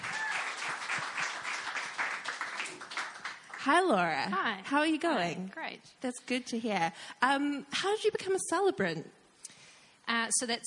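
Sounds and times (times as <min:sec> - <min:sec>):
audience applause: 0:00.0 - 0:03.6
speech: 0:03.6 - 0:09.2, 0:10.1 - 0:10.6.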